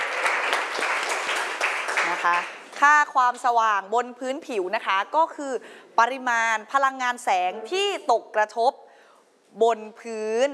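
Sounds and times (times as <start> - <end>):
loud applause from a group of students: 0.0 - 2.7
speech: 2.2 - 8.8, 9.5 - 10.5.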